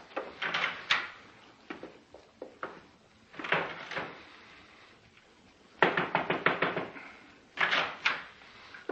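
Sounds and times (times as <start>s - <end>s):
door opening and closing with latch clicks and clunks: 0.2s - 1.9s, 2.6s - 4.4s, 5.8s - 8.9s.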